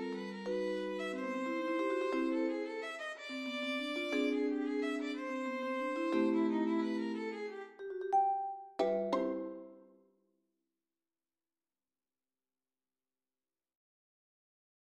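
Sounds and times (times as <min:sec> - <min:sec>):
valse musette: 0:00.0 - 0:09.9.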